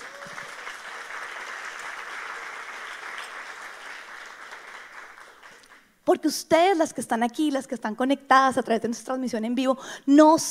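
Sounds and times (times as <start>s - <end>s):
crowd applause: 0.0s - 5.8s
speech: 6.1s - 10.4s.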